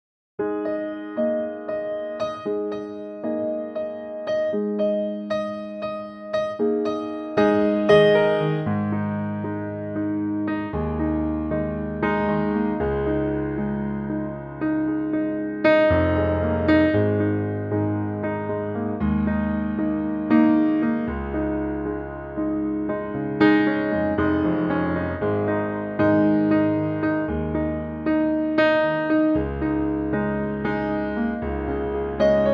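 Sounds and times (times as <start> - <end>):
piano in A-flat: 0.4 - 32.5.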